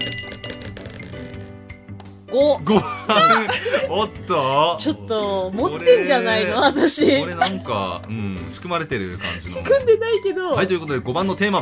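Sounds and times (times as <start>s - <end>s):
dice thrown onto a surface: 0.0s - 1.6s
speech: 2.3s - 11.5s
laughter: 2.7s - 4.1s, 5.6s - 8.0s.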